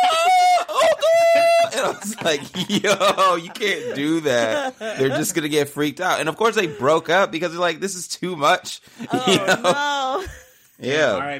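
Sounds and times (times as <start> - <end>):
voice imitating a prolonged scream: 0.0 - 1.9
laughter: 0.0 - 5.5, 9.0 - 10.4
speech: 1.9 - 11.3.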